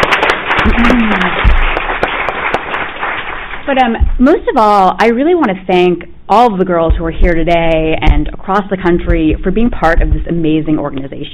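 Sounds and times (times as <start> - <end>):
audience applause: 0.0 - 4.0
speech: 0.8 - 1.5, 3.7 - 11.3.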